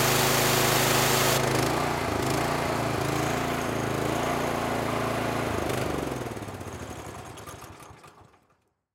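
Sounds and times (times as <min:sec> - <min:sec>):
power washer running: 0:00.0 - 0:06.5.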